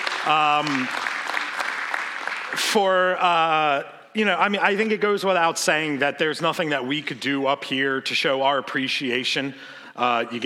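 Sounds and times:
round of applause: 0.0 - 3.0
speech: 0.2 - 1.1, 2.5 - 10.4.

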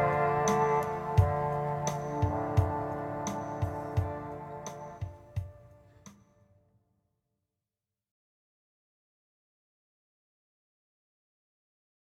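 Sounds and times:
clarinet: 0.0 - 6.3.

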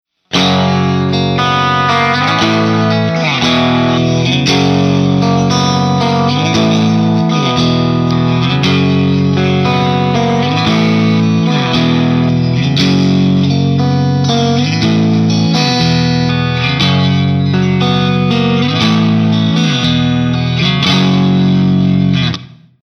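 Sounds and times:
single coil electric guitar: 0.2 - 22.8.

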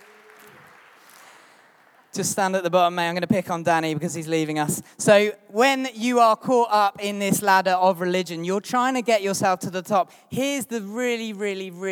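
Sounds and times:
audience applause: 0.0 - 2.2
speech: 2.1 - 11.8.

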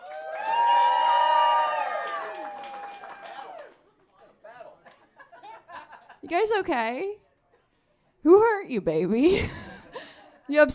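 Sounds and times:
audience clapping and cheering: 0.0 - 4.6
laughter: 4.4 - 6.3, 9.2 - 10.6
speech: 6.3 - 7.2, 8.2 - 9.6, 10.5 - 10.7.

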